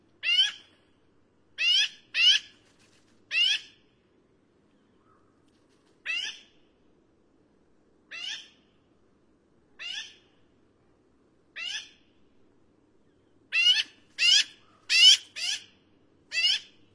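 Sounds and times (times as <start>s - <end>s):
Black-billed magpie Pica hudsonia harsh nasal squawks: 0.2s - 0.6s, 1.6s - 2.5s, 11.6s - 12.0s, 13.5s - 15.7s, 16.3s - 16.8s.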